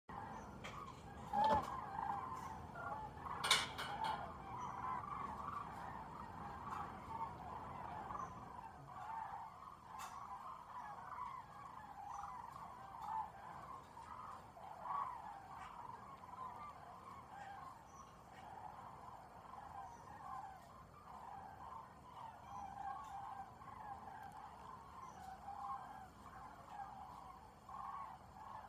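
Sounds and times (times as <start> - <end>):
flock of cranes calling over Bochum: 0.1 - 28.6.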